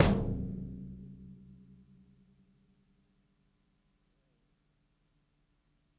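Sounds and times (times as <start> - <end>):
roomy kick drum: 0.0 - 0.9.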